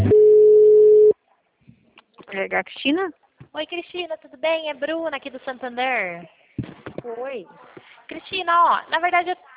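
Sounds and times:
sustained steady telephone tone: 0:00.1 - 0:01.2
speech: 0:02.5 - 0:09.5.

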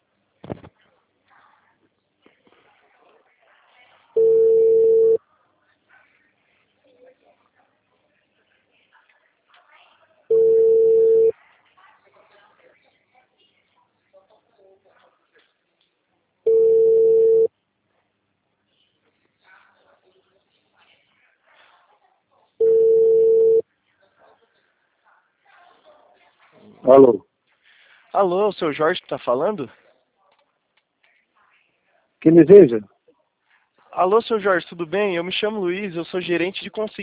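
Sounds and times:
telephone ringback tone while a call connects: 0:04.2 - 0:05.2, 0:10.3 - 0:11.3, 0:16.5 - 0:17.5, 0:22.6 - 0:23.6
speech: 0:26.9 - 0:27.3, 0:28.2 - 0:29.8, 0:32.2 - 0:32.9, 0:34.0 - 0:37.0.

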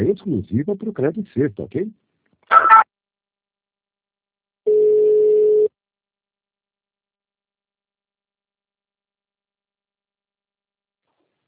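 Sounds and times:
speech: 0:00.0 - 0:02.8
telephone tone while a call is being transferred: 0:04.7 - 0:05.7.

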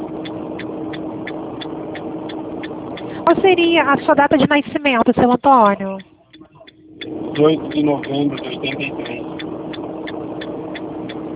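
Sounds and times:
car engine noise while driving: 0:00.0 - 0:11.3
faint high ticks: 0:00.2 - 0:03.1, 0:05.7 - 0:11.3
speech: 0:03.3 - 0:06.1, 0:07.4 - 0:09.0.

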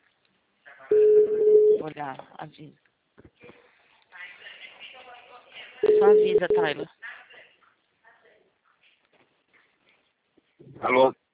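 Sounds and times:
telephone tone as a call is dialed: 0:00.9 - 0:01.8, 0:05.8 - 0:06.8
speech: 0:01.8 - 0:03.3, 0:06.0 - 0:07.1, 0:10.8 - 0:11.2.

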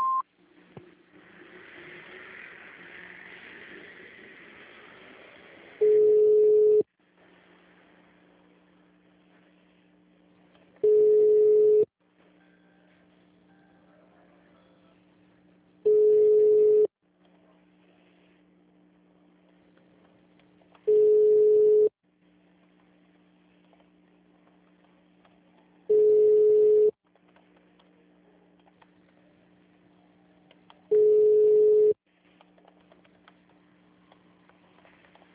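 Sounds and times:
telephone menu beeps on a digital answering service line: 0:00.0 - 0:00.2, 0:10.8 - 0:11.9, 0:15.9 - 0:16.9, 0:20.9 - 0:21.9, 0:25.9 - 0:26.9, 0:30.9 - 0:32.0
faint steady hum: 0:00.0 - 0:35.3.

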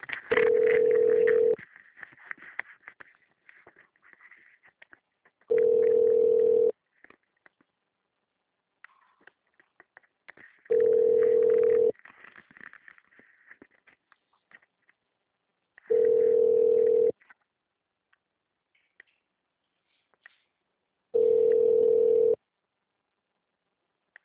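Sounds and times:
telephone ringback tone during a call transfer to Agibank: 0:00.3 - 0:01.6, 0:05.5 - 0:06.8, 0:10.7 - 0:11.9, 0:15.9 - 0:17.2, 0:21.2 - 0:22.4.

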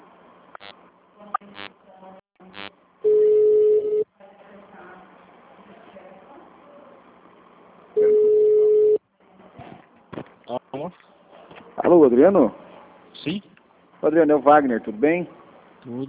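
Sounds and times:
telephone tone on a city hall phone line: 0:03.1 - 0:04.0, 0:08.0 - 0:09.0
speech: 0:12.0 - 0:12.6, 0:13.2 - 0:16.0.

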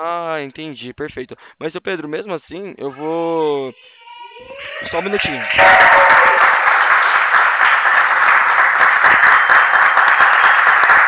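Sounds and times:
speech: 0:00.0 - 0:06.4
office staff applauding after closing a sale, heard through a telephone line: 0:04.6 - 0:11.0.

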